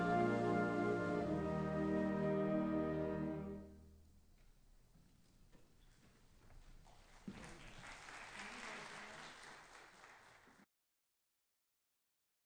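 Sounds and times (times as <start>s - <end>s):
wind ensemble chorale: 0.0s - 3.8s.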